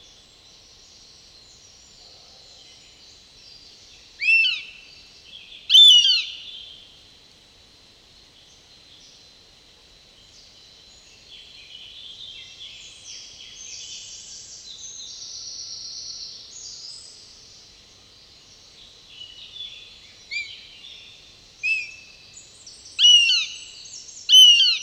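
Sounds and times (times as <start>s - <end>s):
Eurasian goshawk calling: 4.2s - 4.6s, 5.7s - 6.4s, 23.0s - 23.6s, 24.3s - 24.8s.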